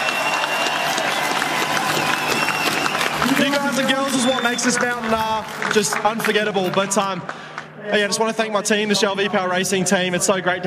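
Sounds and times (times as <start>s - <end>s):
scattered whoops: 0.0s - 4.5s
large outdoor crowd clapping: 0.0s - 8.1s
speech: 3.8s - 10.6s.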